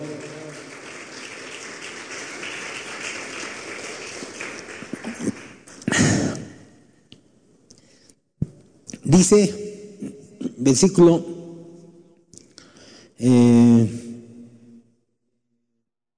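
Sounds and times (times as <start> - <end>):
audience applause: 0.0 - 6.4
speech: 9.1 - 9.7, 10.6 - 11.3.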